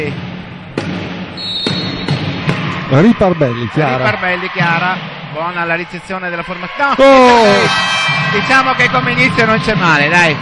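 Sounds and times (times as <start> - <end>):
volleyball float serve impacts in a women's match: 0.0 - 3.0
speech: 2.9 - 10.4.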